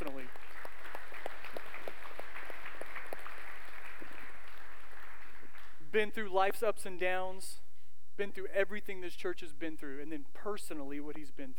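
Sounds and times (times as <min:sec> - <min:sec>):
audience applauding: 0:00.0 - 0:05.8
speech: 0:06.0 - 0:07.6, 0:08.2 - 0:11.5.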